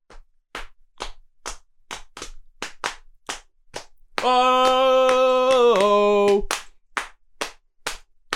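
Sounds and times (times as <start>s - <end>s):
slapping knees rhythmically: 0.1s - 8.3s
speech: 4.2s - 4.7s
person singing a long sustained note: 4.2s - 6.5s.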